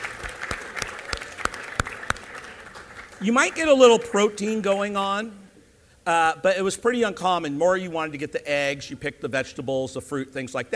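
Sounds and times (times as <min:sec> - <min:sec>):
scattered applause: 0:00.0 - 0:04.0
speech: 0:03.2 - 0:05.4, 0:06.1 - 0:10.7.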